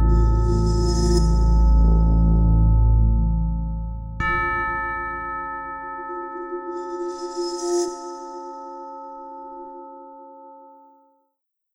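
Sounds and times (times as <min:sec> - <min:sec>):
drone in A major: 0:00.0 - 0:08.2.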